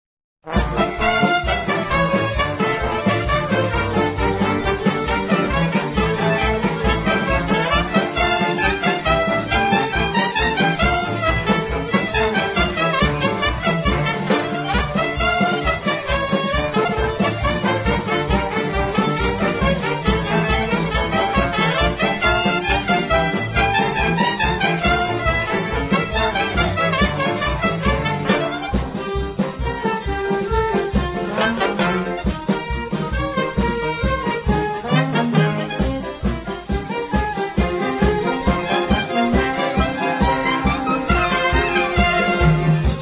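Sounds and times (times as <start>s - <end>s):
klezmer band playing a freylach: 0.4s - 42.9s.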